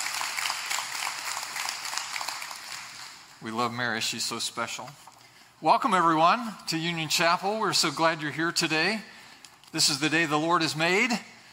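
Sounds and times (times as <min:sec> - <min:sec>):
church audience clapping: 0:00.0 - 0:03.4
speech: 0:03.4 - 0:11.3.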